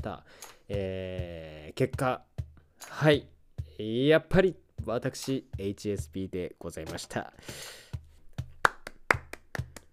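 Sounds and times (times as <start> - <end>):
speech: 0.0 - 7.8
one person clapping hands: 8.4 - 9.9.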